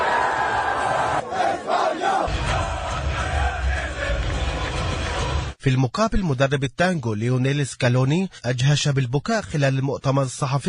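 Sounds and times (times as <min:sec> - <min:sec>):
football crowd chanting and shouting after a final: 0:00.0 - 0:05.6
speech: 0:05.6 - 0:10.6.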